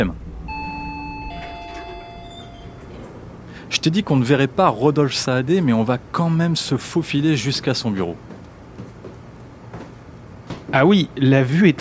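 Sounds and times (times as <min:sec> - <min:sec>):
speech: 0:00.0 - 0:00.2, 0:03.8 - 0:08.3, 0:10.8 - 0:11.8
low steady rumble: 0:00.0 - 0:07.4
elevator chime: 0:00.5 - 0:03.5.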